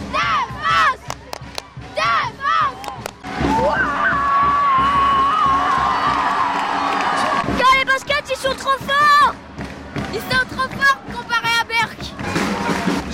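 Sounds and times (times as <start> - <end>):
basketball fans cheering after a win: 0.2 - 13.1.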